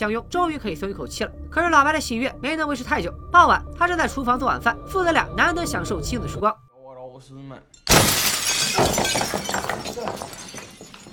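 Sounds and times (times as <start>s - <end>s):
speech: 0.0s - 6.6s, 7.2s - 8.1s, 8.8s - 10.6s
glass shards tinkling and clattering: 7.8s - 11.1s
window glass smashing: 7.8s - 11.1s.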